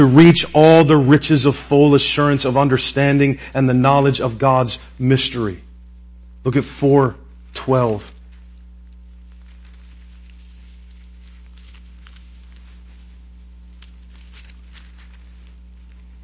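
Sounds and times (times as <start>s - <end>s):
speech: 0.0s - 5.6s, 6.4s - 8.2s
book pages turning: 7.8s - 16.2s.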